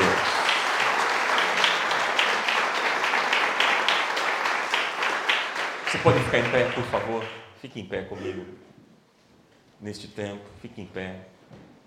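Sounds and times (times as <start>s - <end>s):
applause: 0.0s - 7.5s
speech: 6.0s - 8.7s, 9.8s - 11.6s.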